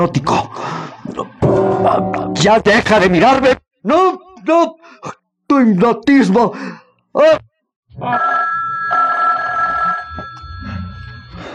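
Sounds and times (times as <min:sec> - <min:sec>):
speech: 0:00.0 - 0:09.1
telephone bell ringing: 0:08.1 - 0:11.5.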